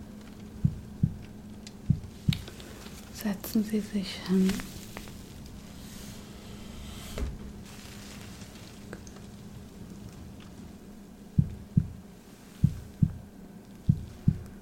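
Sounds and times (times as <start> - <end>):
heartbeat: 0.5 - 2.6, 11.3 - 12.0, 12.6 - 14.6
speech: 3.2 - 4.8.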